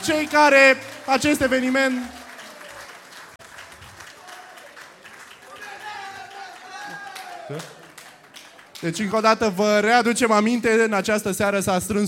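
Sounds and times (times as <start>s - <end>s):
speech: 0.0s - 2.2s, 7.5s - 7.8s, 8.8s - 12.0s
audience applause: 0.0s - 9.4s.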